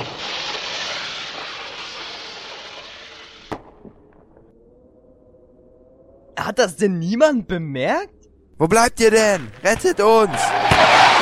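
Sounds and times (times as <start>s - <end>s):
firework cartridge launching with a rushing hiss: 0.0s - 3.7s
firework crack and pops: 0.0s - 4.2s
speech: 6.4s - 10.6s.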